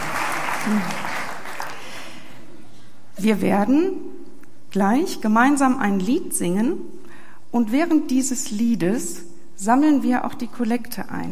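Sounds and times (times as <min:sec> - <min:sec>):
audience applause: 0:00.0 - 0:02.3
speech: 0:00.6 - 0:01.1, 0:03.2 - 0:04.1, 0:04.7 - 0:11.3.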